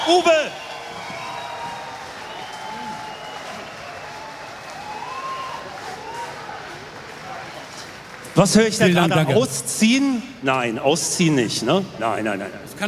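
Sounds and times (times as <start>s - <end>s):
audience applause: 0.0s - 9.6s
speech: 0.1s - 0.7s, 8.4s - 12.8s.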